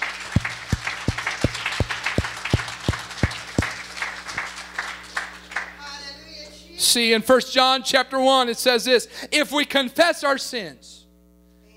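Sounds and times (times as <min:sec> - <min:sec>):
audience clapping hands: 0:00.0 - 0:05.8
speech: 0:06.8 - 0:10.9.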